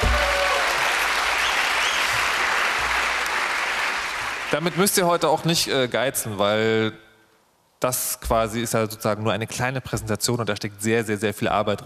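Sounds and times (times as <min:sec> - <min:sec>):
audience applause: 0:00.0 - 0:05.2
speech: 0:04.6 - 0:07.0, 0:07.8 - 0:11.8.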